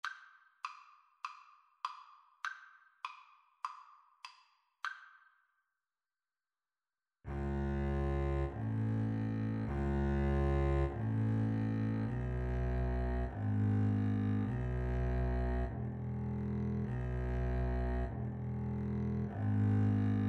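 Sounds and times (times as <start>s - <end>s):
double bass duet: 7.3s - 20.2s.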